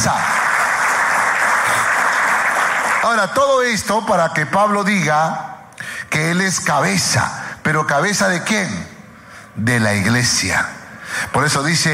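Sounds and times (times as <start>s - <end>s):
audience applause: 0.0s - 3.1s
speech: 3.0s - 5.5s, 6.1s - 8.9s, 9.6s - 11.9s.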